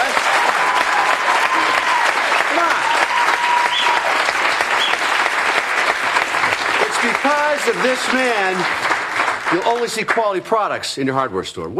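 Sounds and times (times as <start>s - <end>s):
audience applause: 0.0s - 10.6s
speech: 7.6s - 8.9s, 9.5s - 11.7s.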